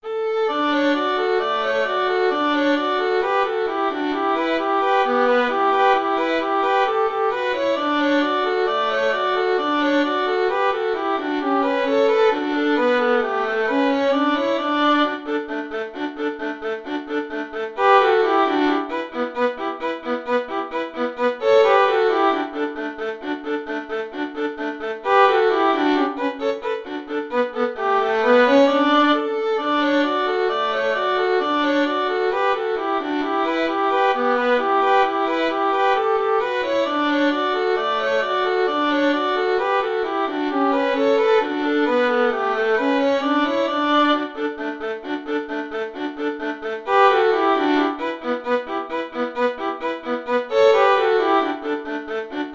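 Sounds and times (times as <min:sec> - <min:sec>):
violin duet: 0:00.0 - 0:52.5.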